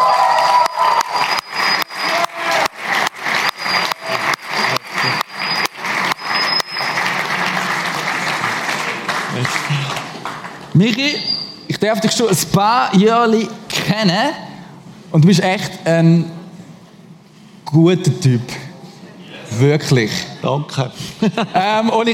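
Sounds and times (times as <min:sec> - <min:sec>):
whistles and cheers: 0:00.0 - 0:08.0
crowd clapping in a steady rhythmic beat: 0:00.0 - 0:11.1
laughter: 0:03.9 - 0:05.5, 0:21.0 - 0:21.9
speech: 0:10.8 - 0:14.4, 0:15.1 - 0:16.4, 0:17.7 - 0:18.6, 0:19.6 - 0:22.1.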